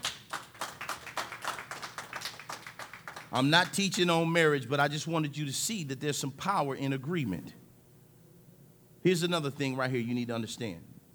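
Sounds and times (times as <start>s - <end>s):
audience clapping hands: 0.0s - 3.9s
speech: 3.3s - 7.6s, 9.0s - 11.0s.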